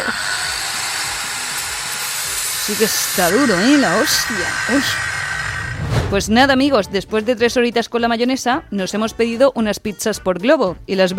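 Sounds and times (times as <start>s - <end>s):
angle grinder cutting: 0.0s - 5.8s
speech: 2.7s - 5.1s, 6.1s - 11.1s.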